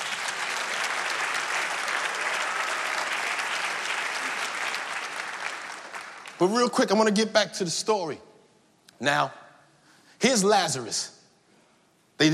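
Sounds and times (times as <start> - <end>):
audience applause, hand clapping: 0.0 - 7.2
speech: 6.4 - 8.3, 9.0 - 9.4, 10.2 - 11.2, 12.2 - 12.3.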